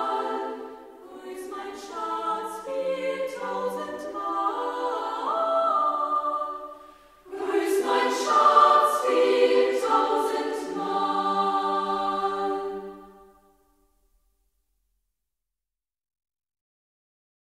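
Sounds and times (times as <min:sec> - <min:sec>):
youth choir singing: 0:00.0 - 0:13.4.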